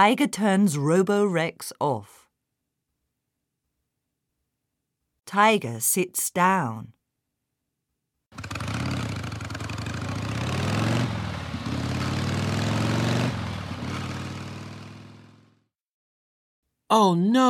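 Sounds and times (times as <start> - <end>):
speech: 0.0 - 2.2, 5.3 - 7.0, 8.3 - 8.6, 16.9 - 17.4
car engine starting and revving: 8.4 - 15.4.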